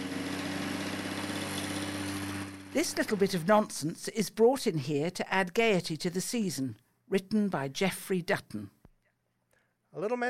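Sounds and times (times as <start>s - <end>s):
Victor lawnmower engine running: 0.0s - 3.8s
speech: 2.8s - 8.8s, 10.0s - 10.2s.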